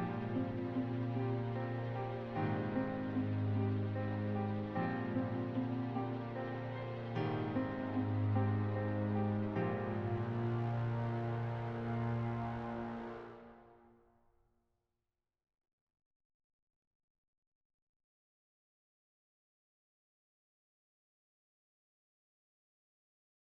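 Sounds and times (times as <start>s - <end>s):
suspense music: 0.0s - 13.9s.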